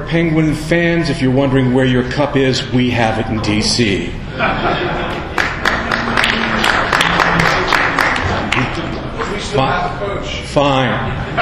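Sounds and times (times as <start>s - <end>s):
speech: 0.1s - 5.0s, 9.5s - 11.4s
laughter: 4.2s - 9.3s, 11.1s - 11.4s
audience clapping: 5.1s - 9.0s.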